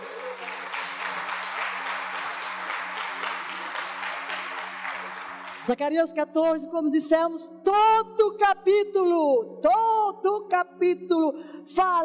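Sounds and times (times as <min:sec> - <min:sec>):
audience applauding: 0:00.0 - 0:05.8
speech: 0:05.7 - 0:12.0.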